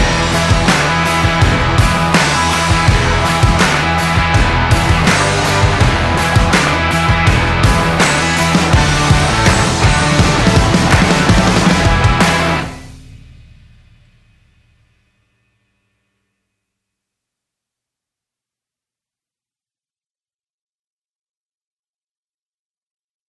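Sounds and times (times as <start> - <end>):
stadium stomping: 0.6 - 12.6.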